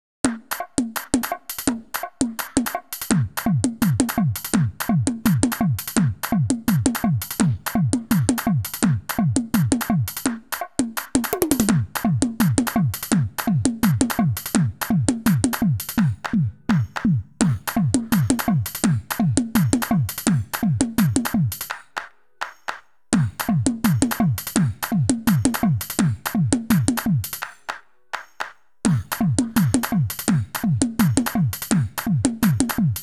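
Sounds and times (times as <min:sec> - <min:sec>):
drums: 0:00.3 - 0:33.0.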